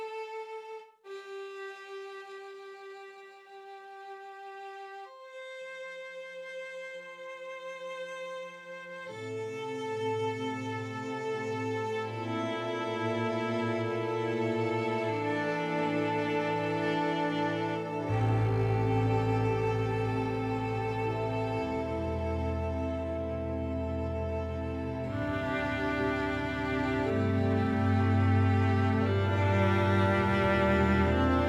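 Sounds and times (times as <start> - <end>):
sad music loop: 9.0 - 31.4.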